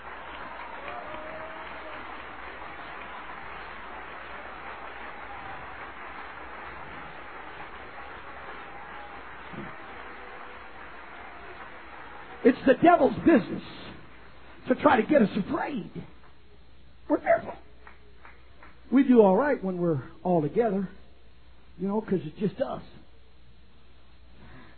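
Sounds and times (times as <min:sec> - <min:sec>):
audience applause: 0:00.0 - 0:15.3
speech: 0:12.4 - 0:13.9, 0:14.7 - 0:16.2, 0:18.9 - 0:21.0, 0:21.8 - 0:23.0.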